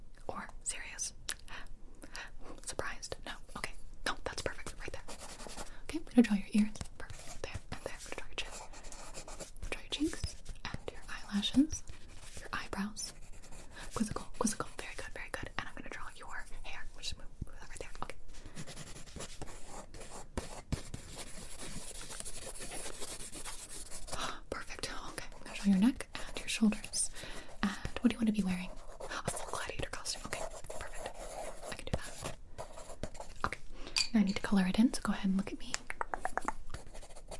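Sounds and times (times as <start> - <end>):
soft whispering: 0.2 - 20.5, 21.9 - 37.3
pencil scratching on paper drawing a portrait: 5.0 - 5.8, 7.0 - 14.6, 18.4 - 24.2, 24.8 - 33.5, 36.7 - 37.3.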